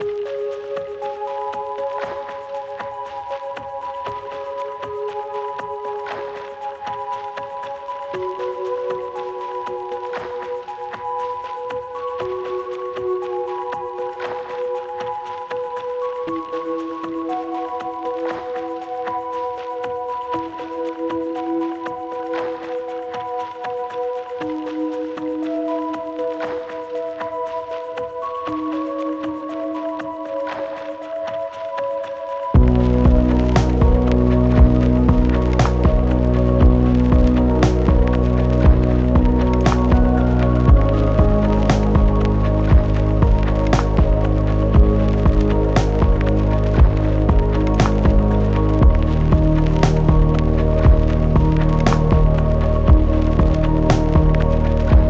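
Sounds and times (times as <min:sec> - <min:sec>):
lo-fi music: 0:00.0 - 0:55.0.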